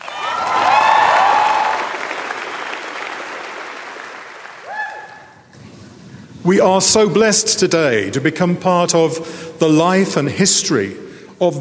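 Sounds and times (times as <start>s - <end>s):
audience applause: 0.0s - 5.4s
speech: 6.5s - 11.6s.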